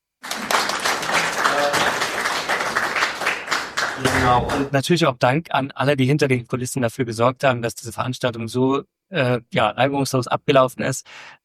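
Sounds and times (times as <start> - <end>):
audience applause: 0.2 - 4.7
speech: 4.3 - 11.4.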